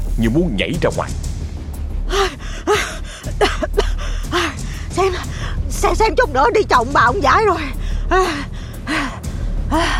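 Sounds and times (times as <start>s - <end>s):
speech: 0.2s - 1.3s, 5.8s - 9.0s, 9.7s - 9.9s
old woman panting heavily with her back against a door: 2.1s - 5.7s, 7.5s - 9.9s.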